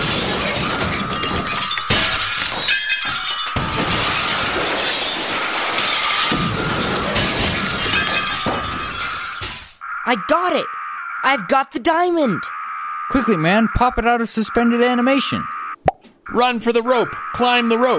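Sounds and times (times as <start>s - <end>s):
glass shards falling: 0.0s - 9.8s
mirrors being smashed, glass shattering: 0.0s - 9.8s
speech: 10.1s - 15.6s, 16.3s - 17.9s.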